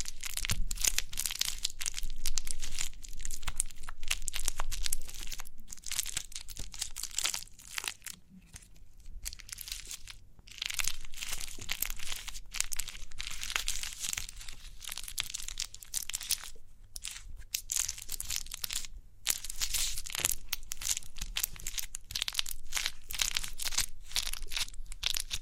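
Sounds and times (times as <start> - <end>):
crinkly crackling from pimple popping: 0.0 - 25.4.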